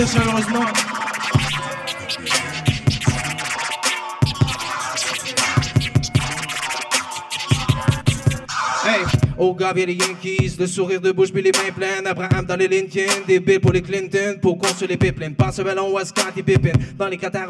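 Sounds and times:
speech: 0.0s - 0.9s, 9.4s - 17.4s
pounding low beat: 0.0s - 9.4s
DJ turntable scratching: 0.0s - 10.4s.

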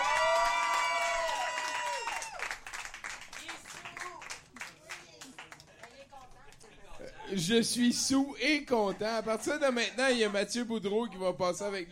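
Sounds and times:
comedy show crowd cheering: 0.0s - 4.4s
comedy show audience clapping: 0.0s - 6.7s
speech: 7.3s - 11.9s.

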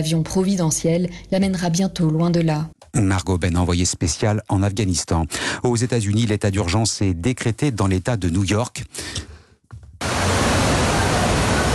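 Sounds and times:
speech: 0.0s - 9.3s
torrential rain on New York City during Storm Ida: 10.0s - 11.7s.

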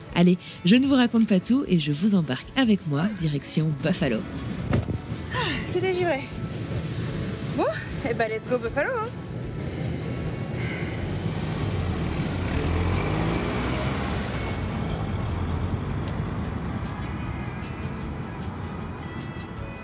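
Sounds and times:
road noise: 0.0s - 19.8s
speech: 0.2s - 4.7s, 5.3s - 6.4s, 7.6s - 9.2s
car driven through wintry streets in Buffalo, engine rumble: 4.0s - 18.8s.

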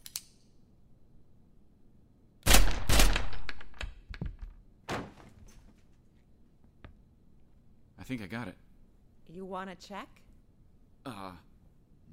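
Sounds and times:
gunshots fired through a door: 2.5s - 3.5s
speech: 8.1s - 8.7s, 9.3s - 10.2s, 11.0s - 11.5s.

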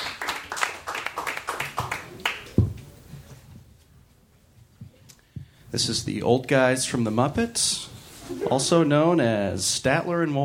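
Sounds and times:
audience clapping: 0.0s - 2.8s
speech: 5.7s - 10.4s.

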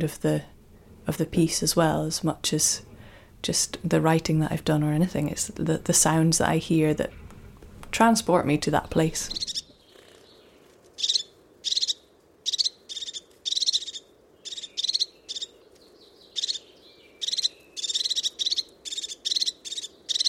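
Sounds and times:
speech: 0.0s - 0.5s, 1.1s - 7.2s, 7.9s - 9.6s
crested tit calling: 8.8s - 20.2s.

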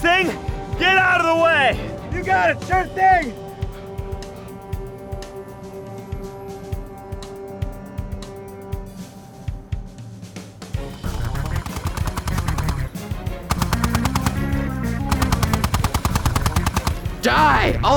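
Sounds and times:
speech: 0.1s - 3.4s, 17.2s - 17.9s
rapid automatic gunfire from a tripod-mounted gun: 11.0s - 17.2s.

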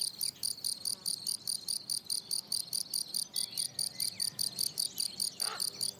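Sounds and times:
field cricket song: 0.0s - 5.9s.

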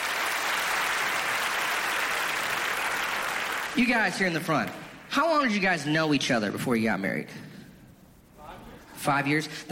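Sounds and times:
audience clapping: 0.0s - 5.1s
speech: 3.8s - 7.5s, 9.0s - 9.7s.

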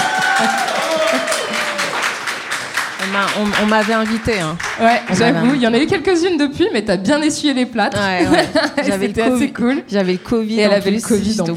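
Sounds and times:
round of applause, many hands clapping: 0.0s - 5.6s
speech: 3.2s - 11.5s
laughter: 8.0s - 9.6s.

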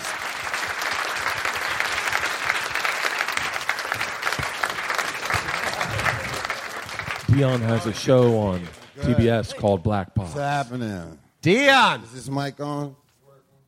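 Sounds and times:
audience applause: 0.0s - 9.5s
speech: 7.4s - 13.0s.

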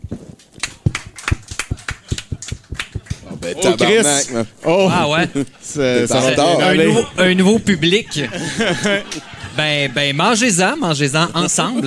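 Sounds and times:
scattered audience applause: 0.6s - 3.8s
laughter: 1.5s - 11.8s
speech: 3.4s - 11.8s.

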